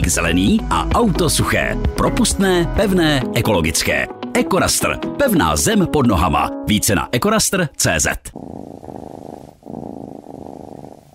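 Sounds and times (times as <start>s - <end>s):
speech: 0.1s - 8.9s
cat purring: 8.3s - 11.1s.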